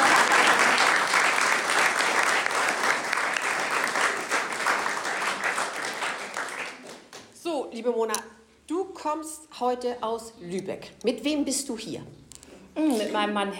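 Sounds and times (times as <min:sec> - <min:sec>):
audience applauding at a solo exhibition opening in a gallery: 0:00.0 - 0:07.3
speech: 0:07.8 - 0:08.4, 0:09.0 - 0:12.2, 0:12.8 - 0:13.5.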